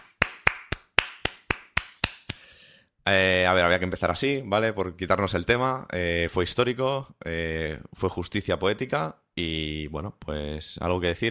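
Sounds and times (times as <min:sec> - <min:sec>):
slow rhythmic applause for a national team winning the world championship: 0:00.0 - 0:02.6
speech: 0:03.1 - 0:11.2.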